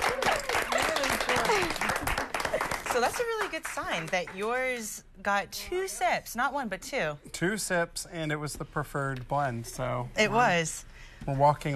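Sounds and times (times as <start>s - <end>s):
crowd applauding: 0.0s - 4.4s
speech: 3.0s - 11.7s.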